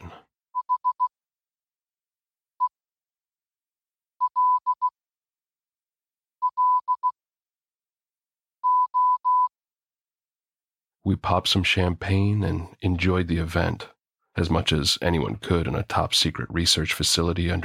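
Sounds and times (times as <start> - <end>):
Morse code beeps spelling hello: 0.6 - 1.1, 4.2 - 5.0, 6.4 - 7.2, 8.6 - 9.5
speech: 11.1 - 17.6.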